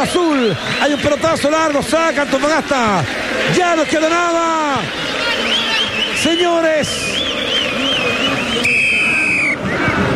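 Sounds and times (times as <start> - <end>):
speech: 0.0 - 5.6, 6.2 - 7.9
referee's final whistle: 0.2 - 1.4, 4.9 - 9.8.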